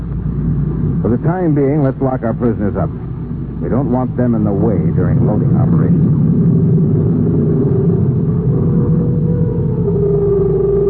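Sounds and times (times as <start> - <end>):
interstellar spaceship landing on a moon: 0.0 - 10.8
speech: 1.0 - 6.6.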